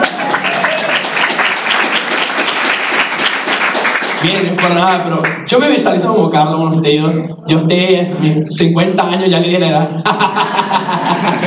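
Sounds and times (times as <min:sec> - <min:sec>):
audience applause: 0:00.0 - 0:05.4
speech: 0:04.2 - 0:11.4
laughter: 0:09.8 - 0:11.4.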